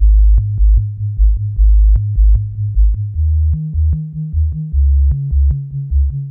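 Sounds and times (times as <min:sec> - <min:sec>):
hardcore breakbeat bass at 152 bpm in A-flat major: 0:00.0 - 0:06.2.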